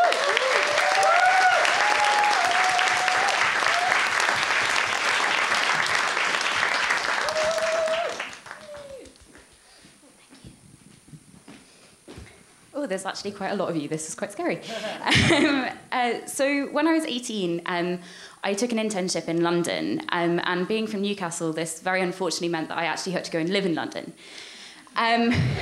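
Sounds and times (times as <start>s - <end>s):
audience applause: 0.0s - 9.5s
speech: 12.9s - 25.6s
laughter: 14.6s - 15.7s.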